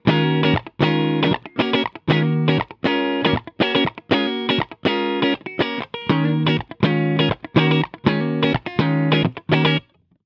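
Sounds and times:
Telecaster electric guitar on neck pickup: 0:00.0 - 0:10.0.

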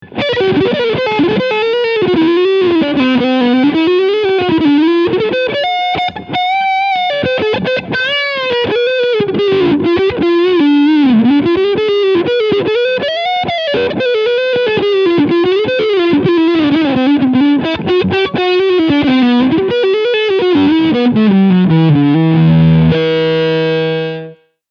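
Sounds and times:
G&L Tribute ASAT Classic electric guitar, overdriven blues, front pickup: 0:00.0 - 0:24.5.

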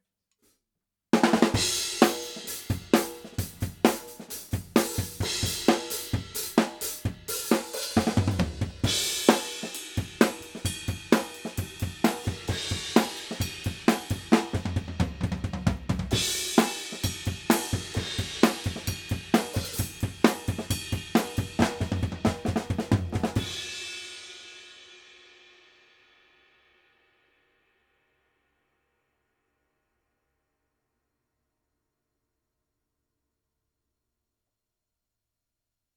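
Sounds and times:
Fredenstein F200 drums: 0:01.1 - 0:28.8.

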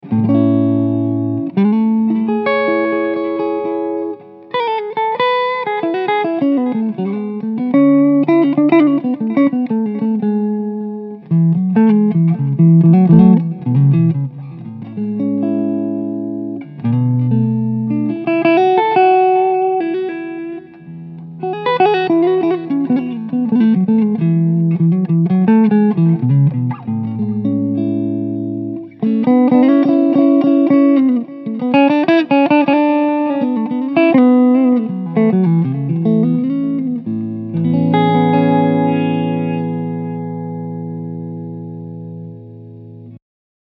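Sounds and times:
Düsenberg neck P90 pickup clean guitar: 0:00.0 - 0:43.2.

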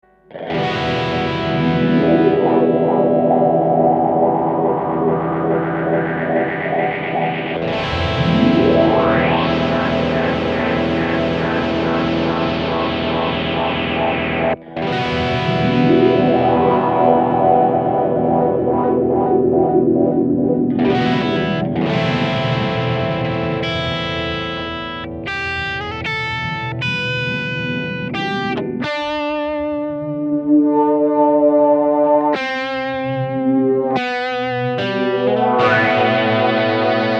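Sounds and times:
guitar with hologram microcosm electronic effects: 0:00.0 - 0:37.1.

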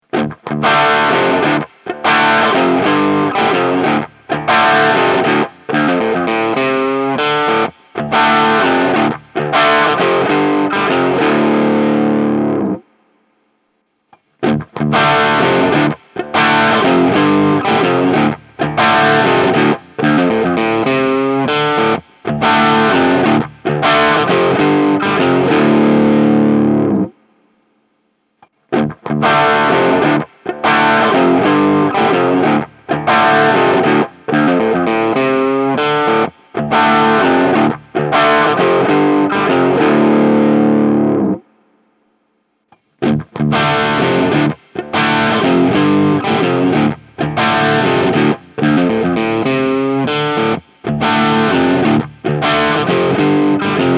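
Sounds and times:
guitar cabinet impulse response: 0:00.0 - 0:12.9, 0:14.1 - 0:27.2, 0:28.4 - 0:41.5, 0:42.7 - 0:53.9.

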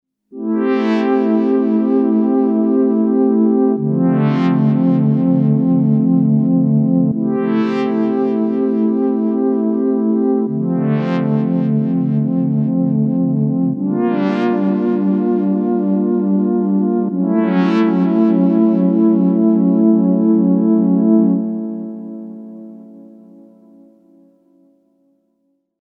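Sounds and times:
SH-4d synthesizer chord cloud ripples: 0:00.4 - 0:24.8.

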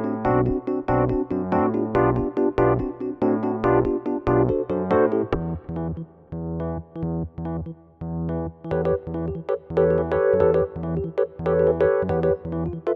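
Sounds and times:
electric piano: 0:00.0 - 0:12.9.

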